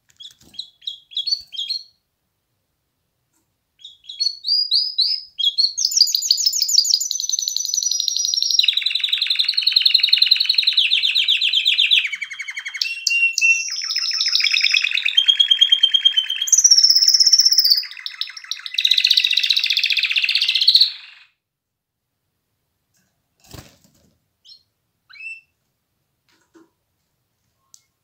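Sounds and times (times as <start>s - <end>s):
canary song: 3.8s - 21.3s.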